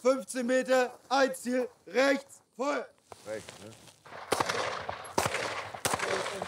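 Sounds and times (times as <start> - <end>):
speech: 0.0 - 4.7
gunshots at a shooting range: 4.1 - 6.4.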